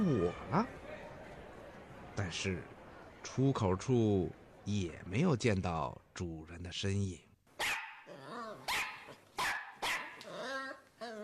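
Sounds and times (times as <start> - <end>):
speech: 0.3 - 0.8, 2.2 - 7.3
dog barking with whiny yelps: 7.6 - 11.2.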